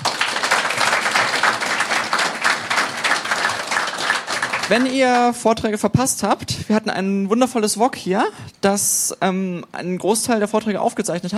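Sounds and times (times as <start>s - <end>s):
audience applause: 0.0s - 5.3s
speech: 4.7s - 11.3s.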